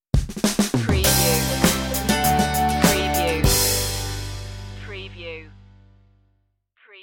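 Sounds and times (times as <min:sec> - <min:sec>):
music stinger: 0:01.0 - 0:06.0.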